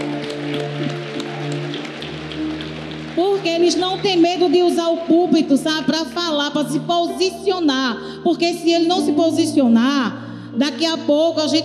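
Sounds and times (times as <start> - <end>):
audience applause: 0.0 - 6.3
speech: 3.4 - 11.6.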